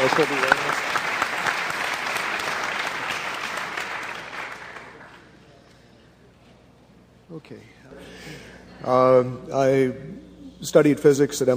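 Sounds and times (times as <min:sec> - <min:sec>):
speech: 0:00.0 - 0:00.6, 0:07.4 - 0:11.5
audience applause: 0:00.0 - 0:05.3.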